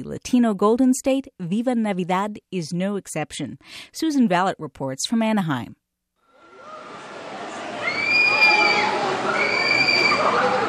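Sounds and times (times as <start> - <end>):
speech: 0.0 - 5.8
riders screaming on a roller coaster at California Adventure: 6.4 - 10.6.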